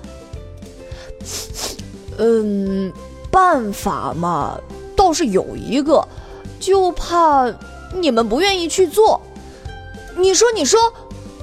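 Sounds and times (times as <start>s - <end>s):
nose sniffs: 0.9s - 2.0s
speech: 1.1s - 1.5s, 2.2s - 9.3s, 10.2s - 11.0s.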